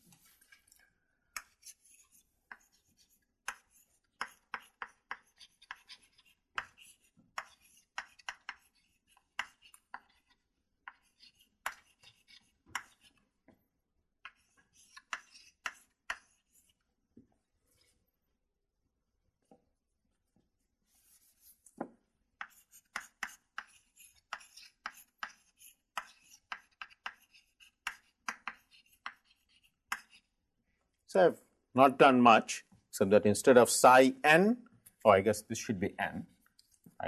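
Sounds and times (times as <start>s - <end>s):
writing out an equation taps and scratches: 0.0s - 13.2s, 14.2s - 17.3s, 21.0s - 30.3s
speech: 31.1s - 36.3s.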